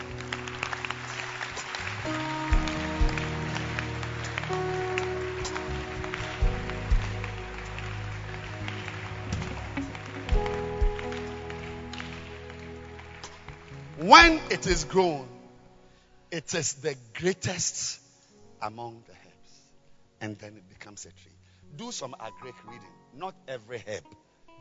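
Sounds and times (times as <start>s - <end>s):
audience clapping hands: 0.0s - 15.2s
speech: 14.2s - 15.4s, 16.3s - 18.0s, 18.6s - 19.2s, 20.2s - 24.2s.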